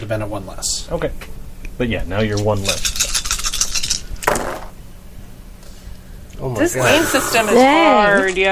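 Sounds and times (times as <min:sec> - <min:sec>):
speech: 0:00.0 - 0:03.1, 0:06.4 - 0:08.5
mixed metal and plastic dice rolling across a table during a tabletop game: 0:04.2 - 0:04.7.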